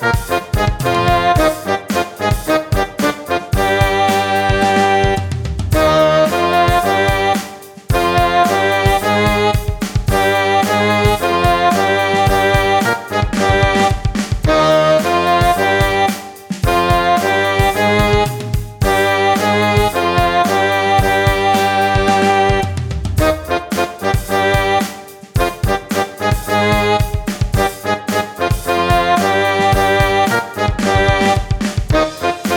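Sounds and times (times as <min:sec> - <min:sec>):
brass playing the second part of a two-part exercise: 0:00.0 - 0:32.5.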